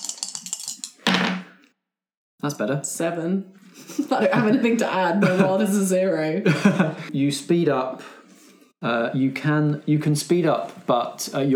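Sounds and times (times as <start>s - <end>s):
dice rattling and clattering: 0.0s - 1.5s
speech: 2.4s - 8.2s, 8.8s - 11.5s
laughter: 3.8s - 7.2s.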